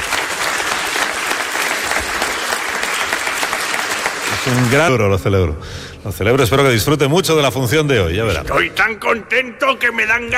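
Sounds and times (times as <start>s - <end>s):
audience applause: 0.0s - 5.0s
speech: 4.4s - 10.3s.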